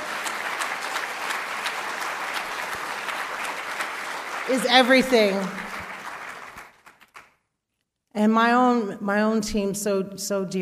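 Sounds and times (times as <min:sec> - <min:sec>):
audience round of applause: 0:00.0 - 0:07.3
speech: 0:04.5 - 0:05.6, 0:08.2 - 0:10.6.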